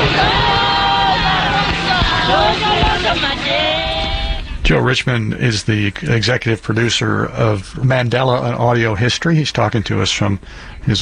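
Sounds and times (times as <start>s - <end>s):
people shouting and calling in crowd: 0.0s - 4.4s
large crowd voices outside a courthouse: 0.0s - 5.0s
speech: 4.7s - 11.0s.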